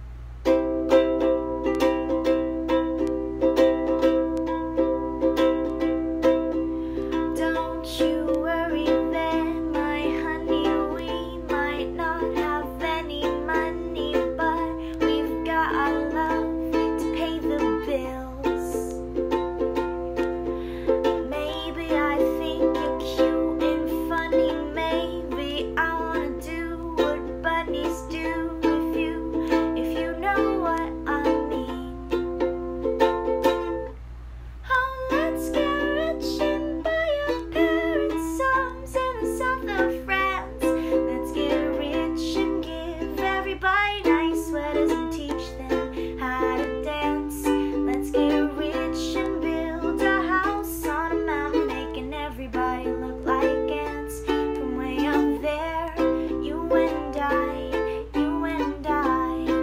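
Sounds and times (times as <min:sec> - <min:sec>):
ukulele: 0:00.0 - 0:59.6.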